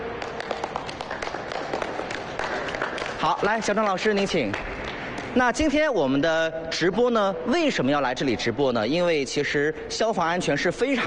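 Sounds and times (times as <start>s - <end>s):
audience applause: 0.0s - 3.7s
speech: 3.2s - 4.7s, 5.3s - 11.0s.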